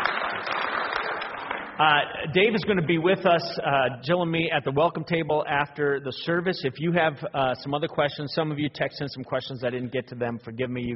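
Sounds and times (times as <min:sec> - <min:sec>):
audience applause: 0:00.0 - 0:02.0
speech: 0:01.8 - 0:10.9.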